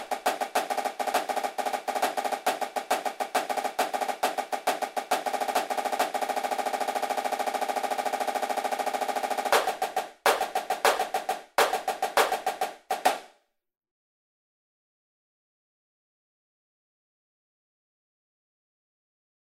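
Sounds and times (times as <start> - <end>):
snare drum triplets: 0.0 - 13.3.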